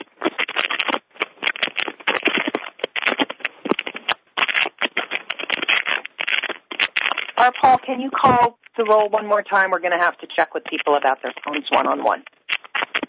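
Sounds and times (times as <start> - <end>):
paper being crumpled over phone line: 0.0 - 7.7, 10.6 - 13.0
speech: 7.4 - 12.3.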